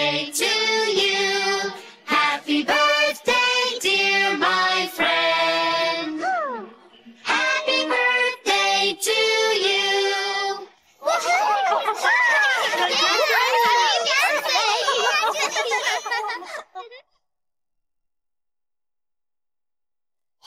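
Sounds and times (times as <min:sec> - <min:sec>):
person singing birthday song: 0:00.0 - 0:10.8
laughter: 0:11.0 - 0:17.2.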